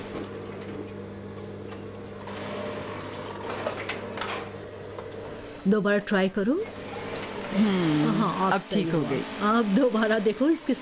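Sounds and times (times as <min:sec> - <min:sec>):
sewing machine running while its bobbin is checked: 0:02.2 - 0:04.5, 0:06.7 - 0:10.8
speech: 0:05.6 - 0:06.8, 0:07.6 - 0:10.8.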